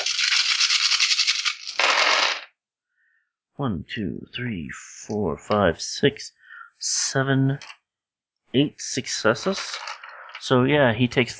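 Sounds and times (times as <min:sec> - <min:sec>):
large handful of dice rolled for a tabletop role-playing game: 0:00.0 - 0:02.5, 0:09.4 - 0:10.5
speech: 0:03.6 - 0:07.8, 0:08.5 - 0:11.3.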